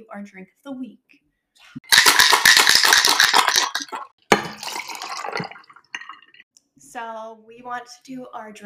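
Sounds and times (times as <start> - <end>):
speech: 0.0 - 2.0, 6.9 - 8.6
cocktail shaker shaking: 1.8 - 6.1
pouring tequila: 1.8 - 6.4.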